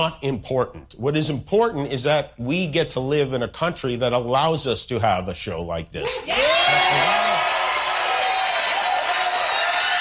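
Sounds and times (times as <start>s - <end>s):
speech: 0.0s - 7.2s
audience applause, standing ovation: 6.4s - 10.0s.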